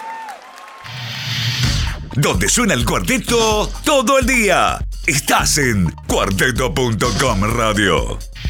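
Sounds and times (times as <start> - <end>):
audience applause: 0.0 - 1.0
speech: 2.2 - 8.3.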